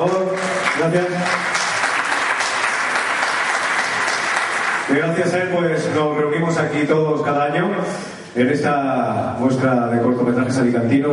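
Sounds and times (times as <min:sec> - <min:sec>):
speech: 0:00.0 - 0:01.5, 0:04.9 - 0:11.1
audience applause: 0:00.0 - 0:05.1.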